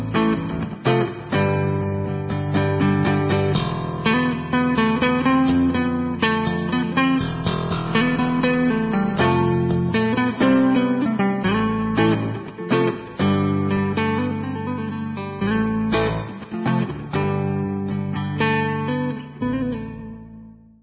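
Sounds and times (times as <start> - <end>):
electric bass guitar: 0.0 - 20.8.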